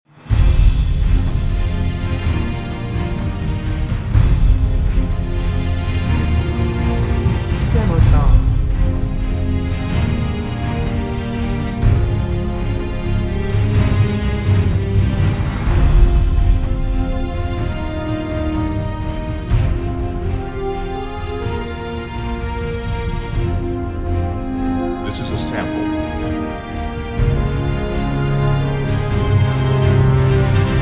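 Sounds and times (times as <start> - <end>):
epic choir trailer music: 0.0 - 30.7.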